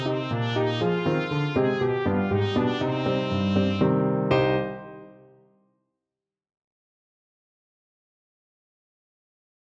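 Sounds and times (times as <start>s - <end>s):
mazel tov trumpet: 0.0s - 5.3s.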